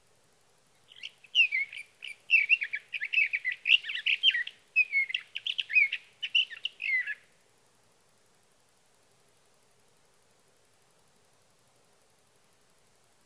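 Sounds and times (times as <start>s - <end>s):
Sage thrasher singing: 0.9s - 7.2s.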